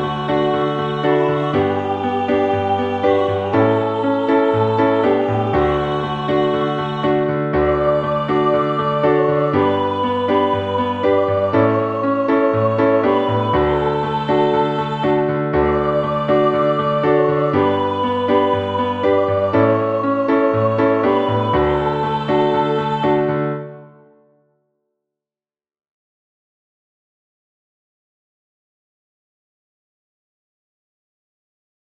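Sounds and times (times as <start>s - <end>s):
piano: 0.0s - 24.6s.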